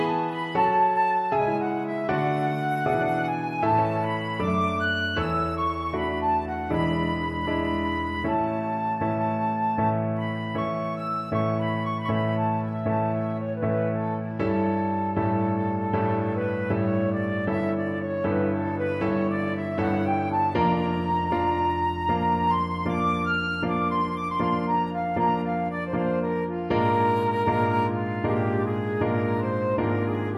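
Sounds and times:
flute: 0.0s - 30.3s.

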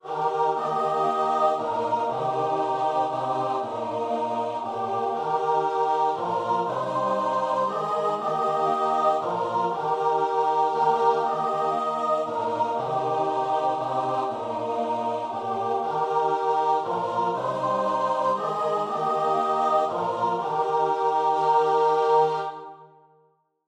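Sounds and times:
choir singing a hymn: 0.0s - 23.1s.

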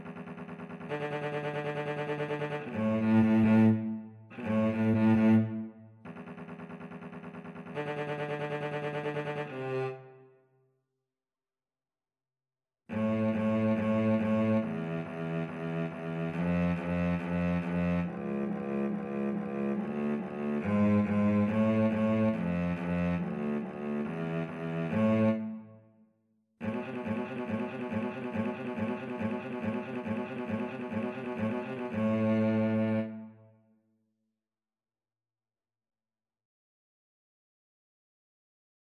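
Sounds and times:
cello duet: 0.0s - 10.1s, 12.9s - 25.6s, 26.6s - 33.3s.

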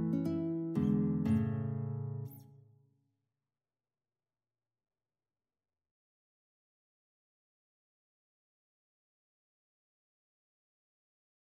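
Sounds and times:
guitar playing waltzes: 0.0s - 2.4s.

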